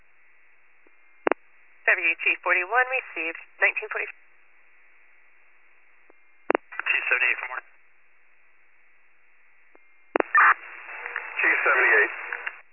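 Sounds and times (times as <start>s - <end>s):
speech: 1.9s - 4.2s, 7.1s - 7.7s
brief garbled voice on radio transmission: 6.8s - 7.6s, 11.3s - 12.4s
dispatch radio alert tone bursts: 10.2s - 12.5s.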